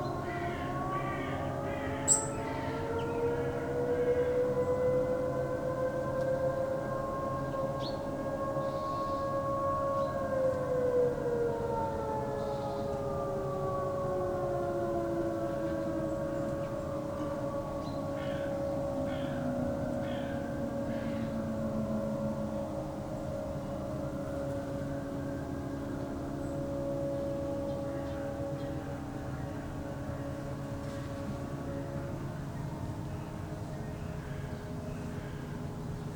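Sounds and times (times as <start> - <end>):
sirens wailing for Ataturk: 0.0 - 36.1.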